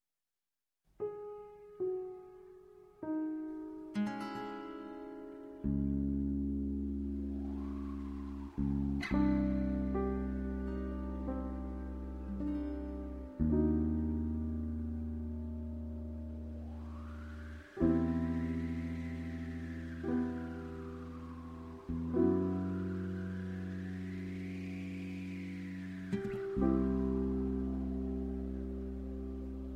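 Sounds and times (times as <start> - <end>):
mystery rain: 3.5 - 29.7.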